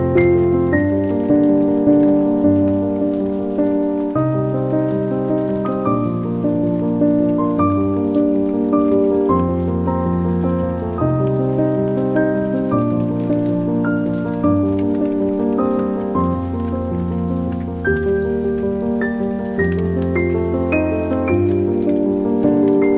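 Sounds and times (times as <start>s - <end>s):
calming piano music: 0.0s - 22.9s
rain: 0.0s - 22.9s.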